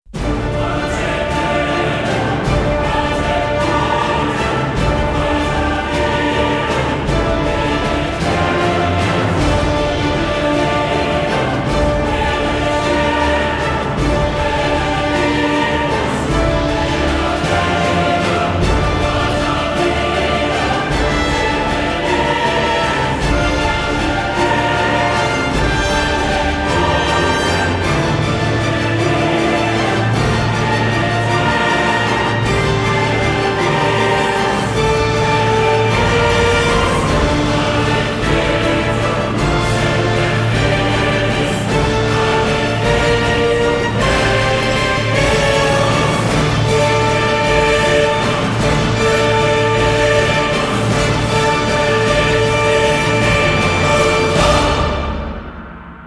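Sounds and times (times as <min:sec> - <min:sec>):
orchestra: 0:00.0 - 0:56.0
choir singing: 0:00.1 - 0:56.0.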